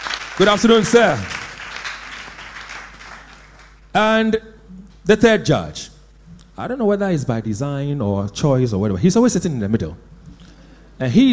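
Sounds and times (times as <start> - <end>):
audience applause: 0.0 - 3.8
speech: 0.4 - 1.4, 4.0 - 5.9, 6.6 - 10.2, 11.0 - 11.3.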